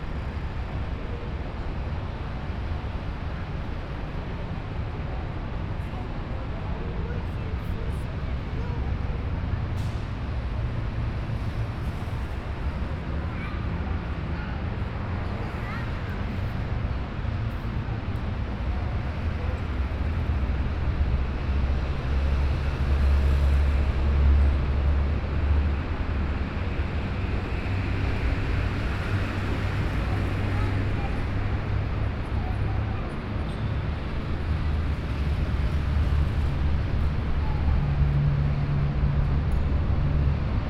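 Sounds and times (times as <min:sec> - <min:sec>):
street ambience in Brazil: 0:00.0 - 0:40.6.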